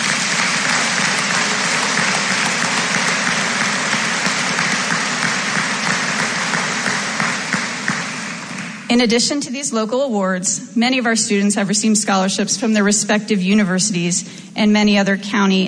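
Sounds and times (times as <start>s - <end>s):
audience applause: 0.0s - 8.9s
speech: 8.9s - 15.6s.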